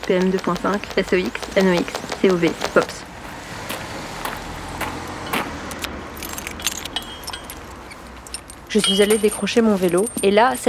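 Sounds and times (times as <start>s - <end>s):
speech: 0.1s - 3.1s, 8.7s - 10.6s
keys jangling: 5.2s - 10.6s.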